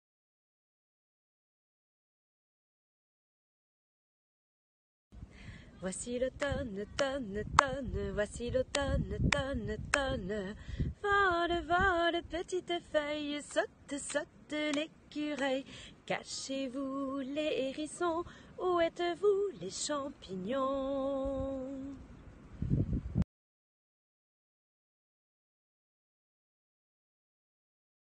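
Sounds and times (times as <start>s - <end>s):
children's song: 5.7s - 22.1s.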